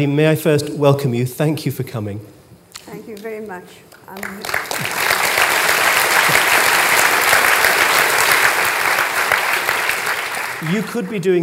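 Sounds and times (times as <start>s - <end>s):
speech: 0.0s - 2.4s, 3.5s - 5.0s, 10.6s - 11.4s
audience applause: 4.0s - 11.4s.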